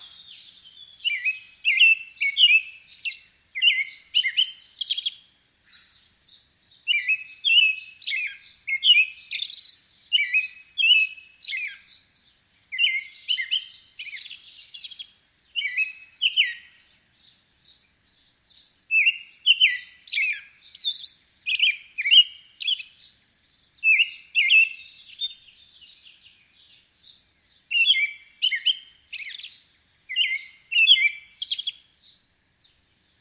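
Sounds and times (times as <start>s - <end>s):
American robin morning songs: 0.0s - 33.1s.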